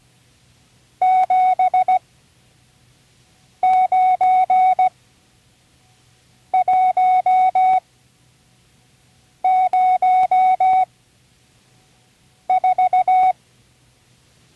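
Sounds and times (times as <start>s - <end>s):
Morse code signals for numbers: 1.0s - 2.0s, 3.6s - 4.9s, 6.6s - 7.8s, 9.4s - 10.9s, 12.5s - 13.4s.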